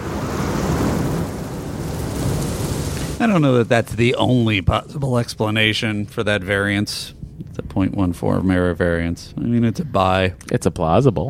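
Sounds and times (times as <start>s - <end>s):
explosion sound effect: 0.0s - 5.0s
speech: 3.2s - 11.2s.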